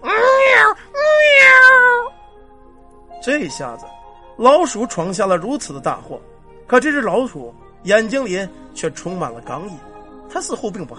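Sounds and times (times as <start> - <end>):
feral cat yowling in pain: 0.0 - 2.1
speech: 3.3 - 10.9.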